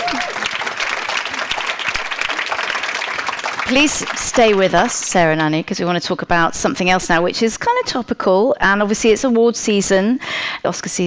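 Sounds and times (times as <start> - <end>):
round of applause: 0.0 - 5.1
speech: 3.7 - 11.0.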